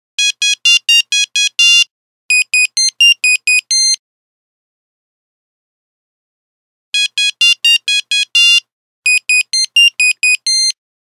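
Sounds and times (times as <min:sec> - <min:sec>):
Nokia phone buzzer: 0:00.2 - 0:04.0, 0:07.0 - 0:10.8.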